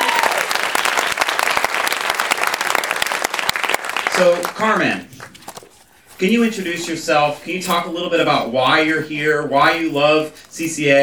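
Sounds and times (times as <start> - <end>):
audience applause: 0.0 - 5.0
speech: 4.2 - 5.3, 6.2 - 11.0.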